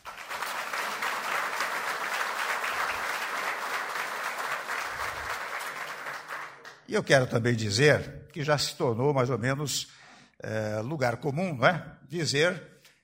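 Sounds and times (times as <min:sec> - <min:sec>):
applause: 0:00.0 - 0:06.9
speech: 0:06.9 - 0:12.7.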